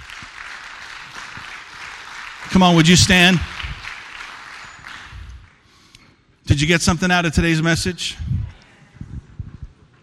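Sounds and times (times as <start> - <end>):
audience applause: 0.0 - 5.6
speech: 2.5 - 3.5, 6.6 - 8.3.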